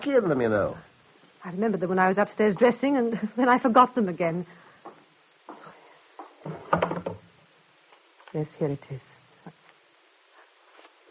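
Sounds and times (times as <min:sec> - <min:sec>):
speech: 0:00.0 - 0:04.6, 0:08.4 - 0:09.2
soft wooden knocks of a desk drawer: 0:06.2 - 0:07.3
desk drawer rattling and clattering as it slides out: 0:06.5 - 0:07.2.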